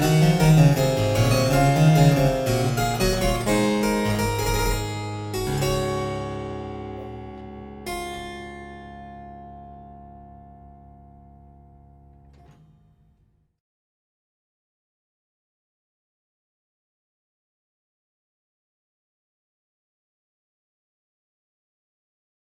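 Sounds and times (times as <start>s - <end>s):
keyboard piece in D major: 0.0s - 12.6s.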